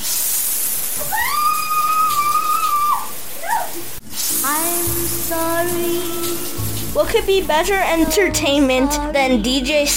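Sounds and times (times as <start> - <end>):
shower water hissing: 0.0 - 7.8
speech: 4.5 - 9.9.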